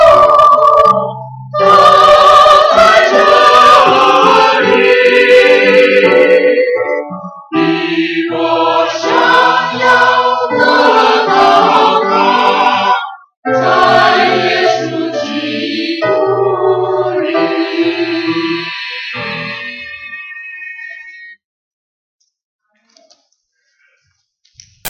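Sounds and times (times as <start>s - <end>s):
choir singing: 0.0s - 19.8s.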